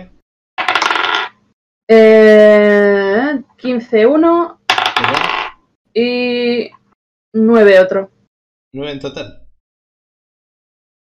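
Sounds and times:
two twenty-sided dice being rolled: 0:00.6 - 0:01.4, 0:04.7 - 0:05.6
speech: 0:01.9 - 0:02.4, 0:03.6 - 0:05.1, 0:06.0 - 0:08.1, 0:08.7 - 0:09.4.

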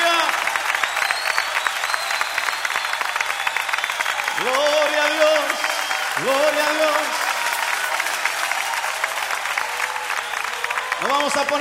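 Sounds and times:
congregation applauding loudly at a worship service: 0:00.0 - 0:11.5
speech: 0:11.2 - 0:11.5.

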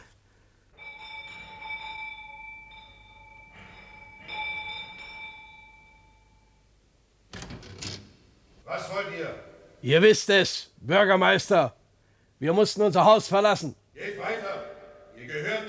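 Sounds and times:
doorbell ringing with bright metallic tone: 0:00.8 - 0:06.7, 0:14.4 - 0:15.6
speech: 0:08.7 - 0:11.8, 0:12.4 - 0:14.4.

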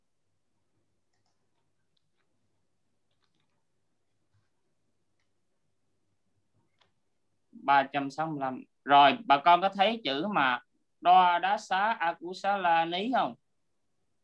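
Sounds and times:
soft typing on a computer keyboard: 0:01.0 - 0:04.5
speech: 0:07.6 - 0:13.4.

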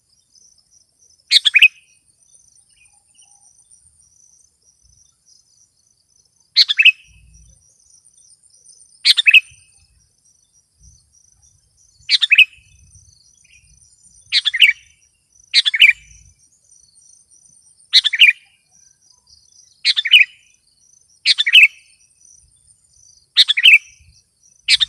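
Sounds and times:
high insect hum: 0:00.0 - 0:24.8
sooty-headed bulbul chirping: 0:00.0 - 0:24.8.

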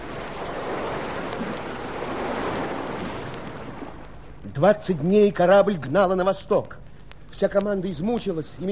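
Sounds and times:
rushing wind in a storm at sea: 0:00.0 - 0:04.3
surging waves in a storm at sea: 0:00.0 - 0:04.6
speech: 0:04.6 - 0:08.7.

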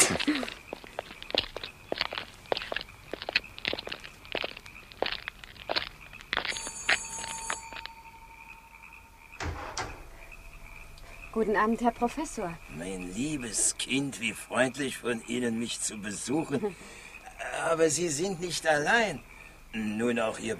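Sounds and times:
footsteps of people walking off together: 0:00.0 - 0:08.0
speech: 0:00.1 - 0:00.6, 0:11.4 - 0:17.0, 0:17.6 - 0:20.5
high ringing tone: 0:06.5 - 0:12.0
heavy knocks: 0:09.2 - 0:10.8.

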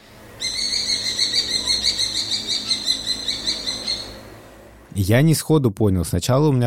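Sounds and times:
falcon calling ki-ki-ki: 0:00.4 - 0:04.2
speech: 0:05.0 - 0:06.6.

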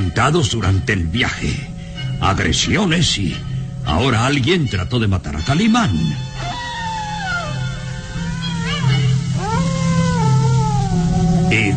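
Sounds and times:
steady low droning hum: 0:00.0 - 0:11.7
speech: 0:00.1 - 0:06.5
eerie howls: 0:06.2 - 0:11.7.

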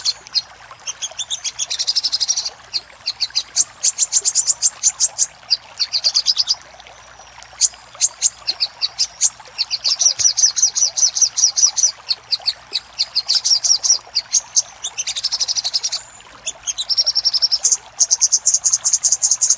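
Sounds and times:
little spiderhunter chipping and trilling: 0:00.0 - 0:06.6, 0:07.6 - 0:19.5.

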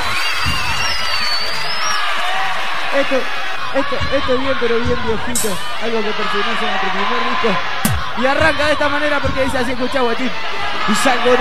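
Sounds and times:
crowd of young fans shouting and cheering: 0:00.0 - 0:11.3
speech: 0:03.0 - 0:11.3.

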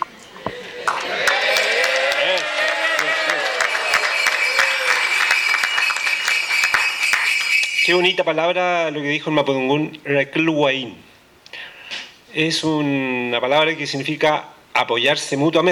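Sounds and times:
crowd clapping at a festival launch: 0:00.5 - 0:08.1
speech: 0:07.9 - 0:11.1, 0:12.4 - 0:15.6.

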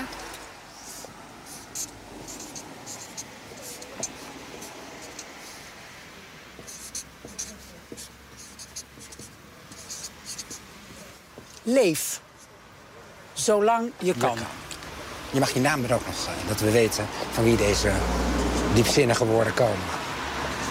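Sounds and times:
pen scratching on paper, writing by hand: 0:00.7 - 0:05.8, 0:06.6 - 0:11.1, 0:17.5 - 0:19.2
speech: 0:11.7 - 0:12.1, 0:13.5 - 0:14.6, 0:15.3 - 0:20.0.

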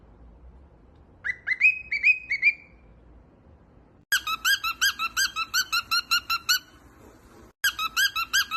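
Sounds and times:
cockatiel whistling: 0:01.2 - 0:02.8, 0:04.2 - 0:06.7, 0:07.7 - 0:08.5.

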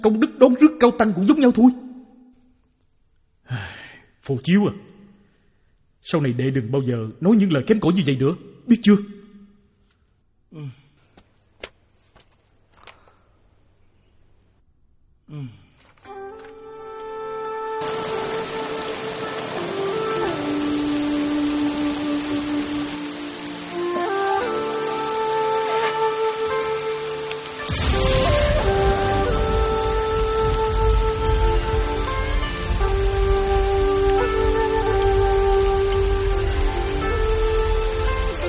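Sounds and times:
speech: 0:00.0 - 0:01.8, 0:03.5 - 0:05.0, 0:06.0 - 0:09.2, 0:10.5 - 0:10.8, 0:15.3 - 0:15.6
rain falling: 0:16.3 - 0:38.4.

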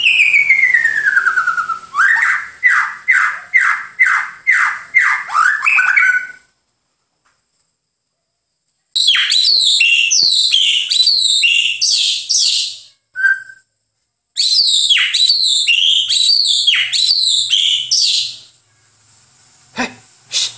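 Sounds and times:
White-rumped shama song with sustained wavering whistle: 0:00.0 - 0:06.5, 0:09.0 - 0:13.8, 0:14.4 - 0:18.9.

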